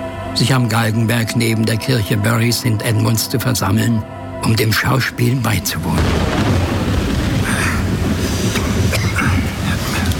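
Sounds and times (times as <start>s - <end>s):
speech: 0.4s - 6.5s
heavy rain: 5.9s - 10.1s
thunder: 6.0s - 10.1s.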